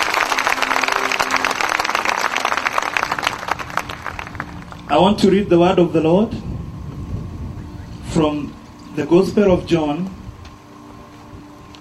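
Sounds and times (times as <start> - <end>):
large crowd clapping: 0.0 - 5.0
faint tonal hum: 0.0 - 11.7
speech: 4.9 - 6.4, 8.2 - 10.2.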